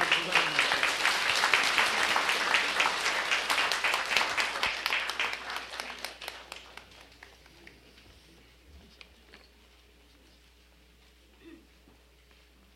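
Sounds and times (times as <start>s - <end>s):
audience applause: 0.0s - 7.4s.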